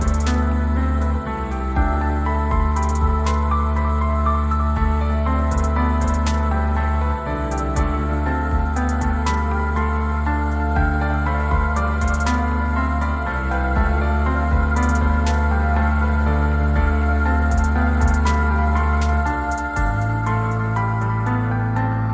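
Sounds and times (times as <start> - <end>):
piano piece: 0.0 - 22.1.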